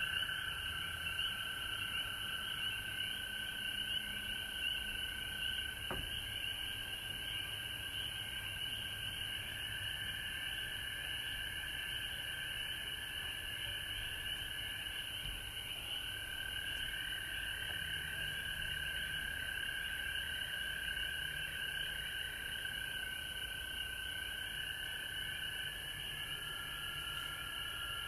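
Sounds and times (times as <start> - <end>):
frogs trilling: 0.0 - 28.0.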